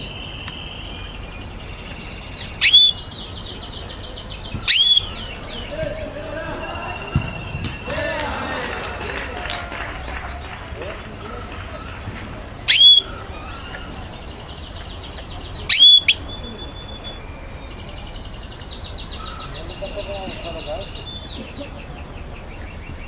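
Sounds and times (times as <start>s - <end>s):
canary trilling song: 0.0s - 7.9s, 12.6s - 23.0s
laughter: 5.4s - 12.6s, 19.6s - 22.2s.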